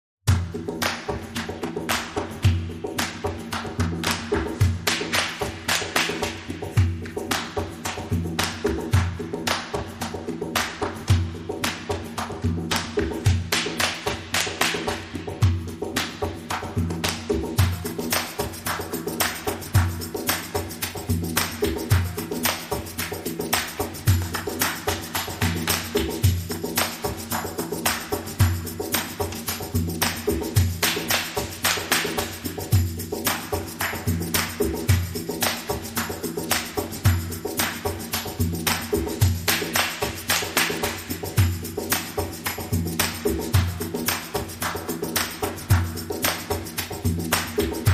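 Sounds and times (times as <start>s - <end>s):
percussion: 0.2s - 47.9s.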